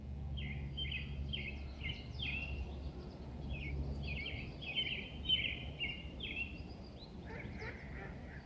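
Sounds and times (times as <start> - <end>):
birds singing in a park: 0.3 - 8.4.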